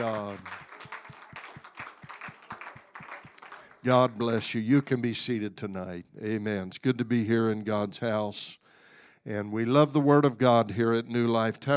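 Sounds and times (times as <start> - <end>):
audience clapping hands together: 0.0 - 5.2
speech: 3.8 - 8.6, 9.2 - 11.7.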